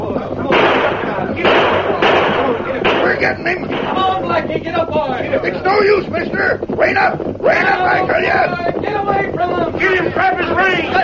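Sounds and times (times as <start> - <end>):
gunshots in a western radio drama: 0.5 - 4.4
speech: 3.2 - 11.0.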